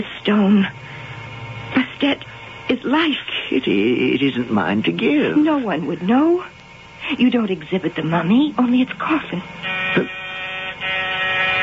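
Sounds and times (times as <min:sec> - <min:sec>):
speech: 0:00.0 - 0:00.8, 0:02.0 - 0:10.2
door buzzer: 0:09.6 - 0:11.6.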